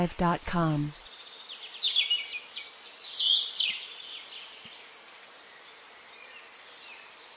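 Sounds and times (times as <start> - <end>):
speech: 0.0 - 1.0
soft steady hiss: 0.0 - 7.3
bird twittering: 1.0 - 4.8.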